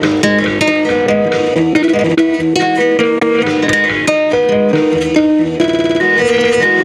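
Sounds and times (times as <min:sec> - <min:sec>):
guitar: 0:00.0 - 0:06.8.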